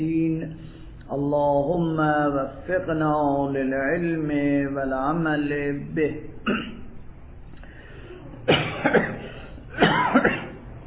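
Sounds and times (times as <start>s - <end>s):
speech: 0.0s - 6.8s, 8.9s - 9.2s
person with a spring allergy coughing: 6.4s - 6.9s, 8.4s - 10.6s.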